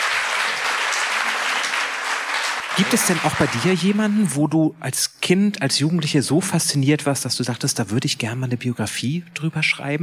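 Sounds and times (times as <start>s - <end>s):
audience applauding a screenwriter after an interview: 0.0s - 4.3s
speech: 2.8s - 10.0s.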